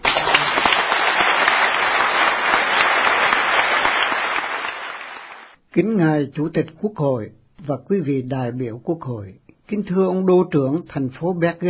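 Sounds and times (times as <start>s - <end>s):
audience applause and standing ovation in a hall at an award ceremony in Bergen: 0.0s - 5.6s
speech: 5.8s - 11.6s.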